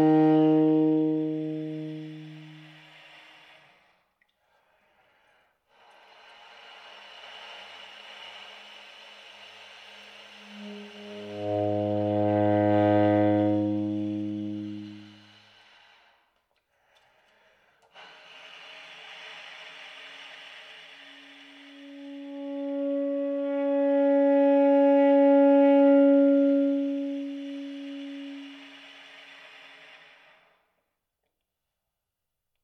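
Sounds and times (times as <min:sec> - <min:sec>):
baritone saxophone air tones shifting from bright to dark on low, middle and high notes: 0:00.0 - 0:03.5, 0:09.4 - 0:15.9, 0:20.7 - 0:29.6.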